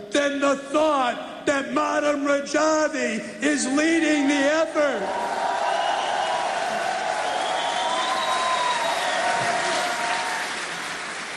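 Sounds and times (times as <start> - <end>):
speech: 0.2 - 5.4
sustained applause from a large audience in a hall: 5.0 - 11.3
faint raised voices or whistles: 7.2 - 9.3.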